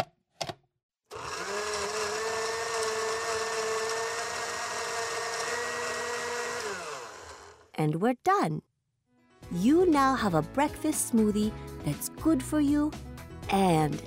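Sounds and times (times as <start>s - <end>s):
blender blending smoothie ingredients with ice: 1.1s - 7.7s
speech: 7.8s - 8.7s, 9.5s - 14.0s.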